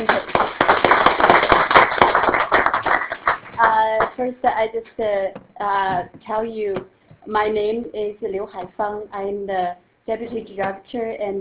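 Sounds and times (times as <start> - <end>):
audience applause: 0.0 - 3.8
speech: 4.2 - 11.4.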